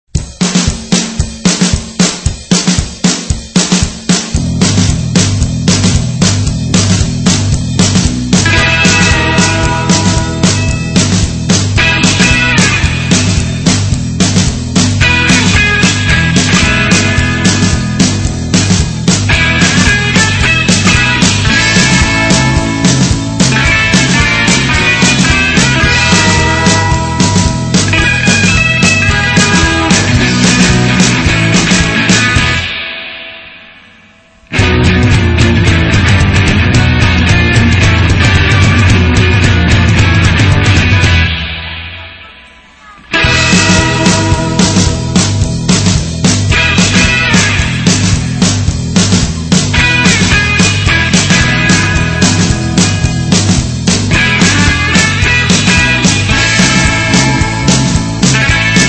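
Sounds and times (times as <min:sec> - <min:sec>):
instrumental music: 0:00.1 - 0:58.8.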